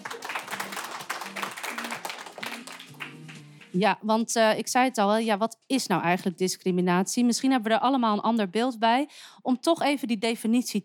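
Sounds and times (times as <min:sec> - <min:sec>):
crowd applauding: 0:00.0 - 0:03.8
speech: 0:03.7 - 0:10.8.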